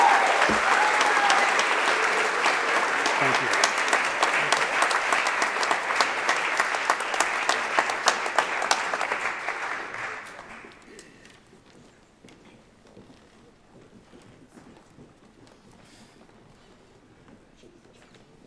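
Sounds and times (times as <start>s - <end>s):
audience applause: 0.0s - 10.9s.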